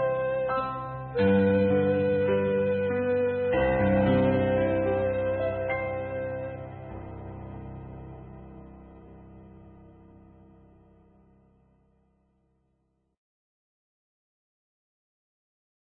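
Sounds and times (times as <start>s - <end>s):
morning prayer melody: 0.0s - 9.1s.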